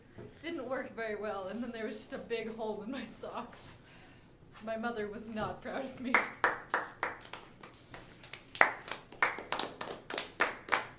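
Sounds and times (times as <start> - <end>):
speech: 0.7 - 3.8, 4.6 - 6.4
hands clapping: 6.2 - 10.9.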